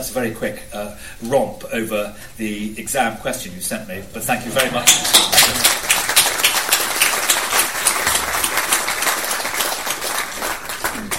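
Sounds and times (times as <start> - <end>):
speech: 0.0 - 5.8
audience applause: 4.6 - 11.1.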